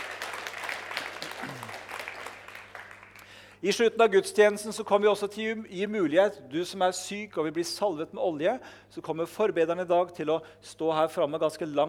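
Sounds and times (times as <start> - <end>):
audience applause: 0.0 - 3.4
low voice murmur: 1.4 - 1.8
speech: 3.6 - 11.8.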